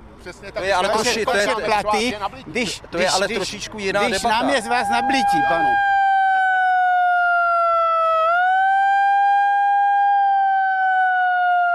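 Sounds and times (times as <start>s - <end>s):
speech: 0.2s - 5.9s
small portable hand siren wailing: 4.0s - 11.7s.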